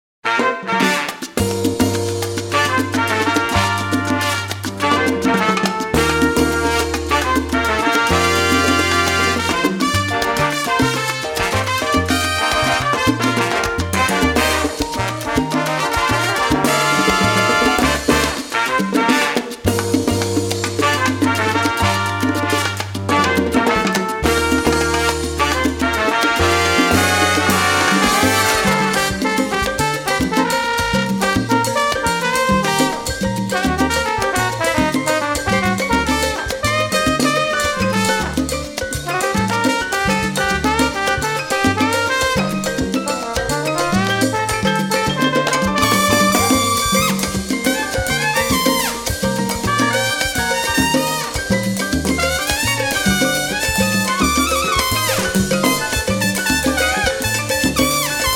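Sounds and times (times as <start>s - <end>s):
Latin jazz music: 0.2s - 58.3s.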